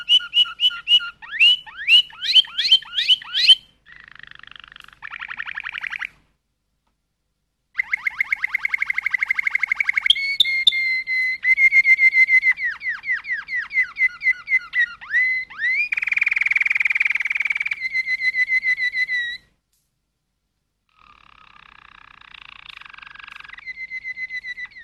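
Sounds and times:
Waterslager canary song: 0.0 - 6.4, 7.7 - 19.6, 20.9 - 24.8.

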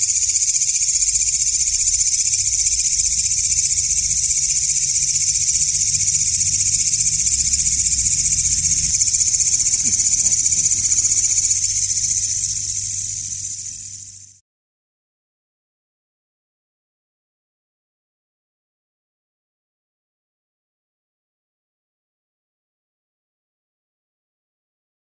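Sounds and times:
grasshopper-type insect pulsing buzz: 0.0 - 14.4.

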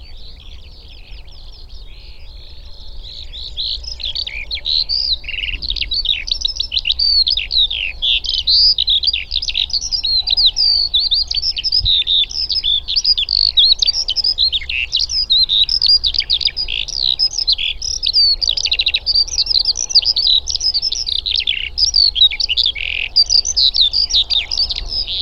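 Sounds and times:
faint low rumble: 0.0 - 10.0
Eurasian skylark song: 0.0 - 25.2.

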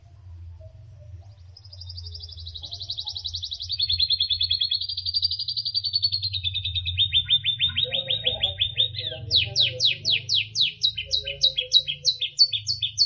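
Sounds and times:
canary song with trills, buzzy bursts and rapid chips: 0.0 - 13.0.

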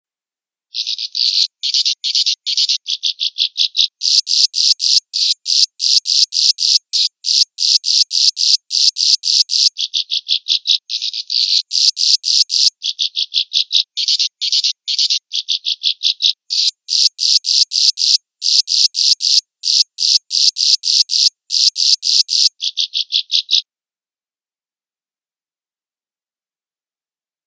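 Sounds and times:
swiftlet rasping chirps: 0.8 - 14.3, 15.5 - 23.6.

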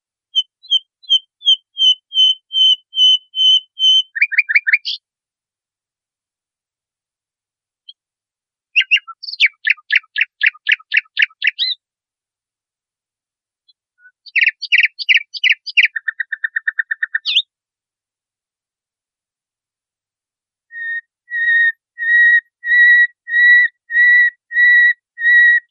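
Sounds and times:
nightingale song: 0.3 - 5.0, 8.7 - 11.8, 13.6 - 17.6, 20.7 - 25.6.

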